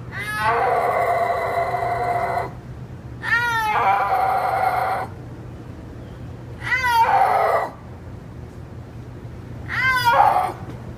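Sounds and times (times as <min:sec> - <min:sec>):
low steady hum: 0:00.0 - 0:10.9
snow leopard mew-like yowls: 0:00.1 - 0:02.6, 0:03.2 - 0:05.1, 0:06.6 - 0:07.8, 0:09.7 - 0:10.7.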